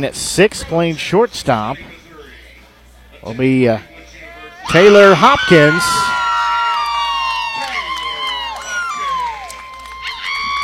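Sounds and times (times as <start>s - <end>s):
speech: 0.0s - 2.0s, 3.2s - 3.9s, 4.7s - 6.2s
cheering section near broadcast booth cheering and shouting: 4.4s - 10.6s.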